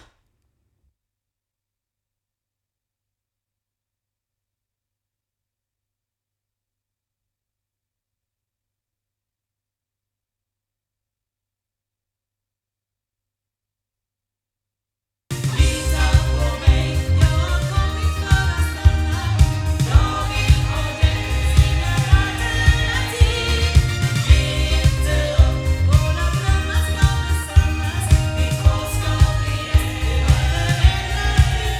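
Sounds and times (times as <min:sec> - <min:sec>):
loudspeakers: 0:15.4 - 0:31.7.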